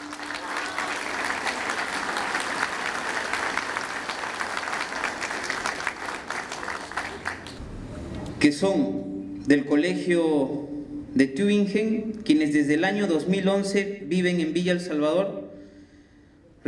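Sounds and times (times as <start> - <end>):
audience applause: 0.0 - 7.6
speech: 8.4 - 15.4.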